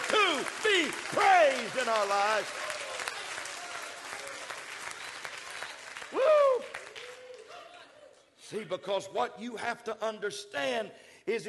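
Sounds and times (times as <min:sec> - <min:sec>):
audience clapping hands: 0:00.0 - 0:07.9
speech: 0:00.4 - 0:02.8, 0:08.5 - 0:11.4.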